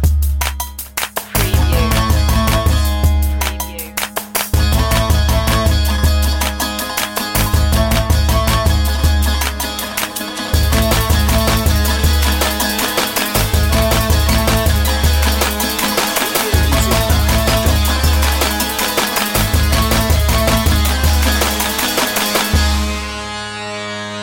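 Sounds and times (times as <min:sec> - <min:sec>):
eastern-style pulses: 0:00.2 - 0:24.0.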